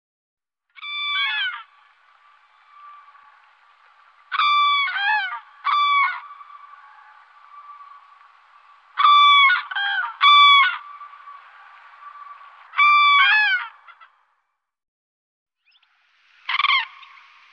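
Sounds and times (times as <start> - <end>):
common crane bugling and trumpeting calls: 0.8 - 14.2, 16.5 - 17.2.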